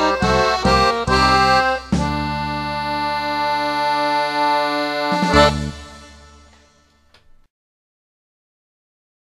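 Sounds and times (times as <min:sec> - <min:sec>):
klezmer music: 0:00.0 - 0:07.3.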